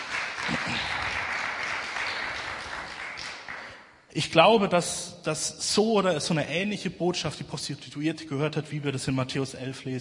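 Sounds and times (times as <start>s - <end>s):
audience applause: 0.0s - 3.8s
speech: 0.5s - 1.2s, 4.2s - 9.9s.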